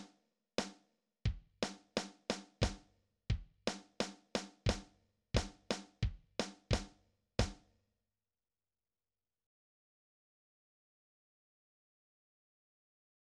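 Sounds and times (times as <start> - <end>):
drums playing a warm-up: 1.6 - 2.8, 3.7 - 4.8, 5.4 - 7.6.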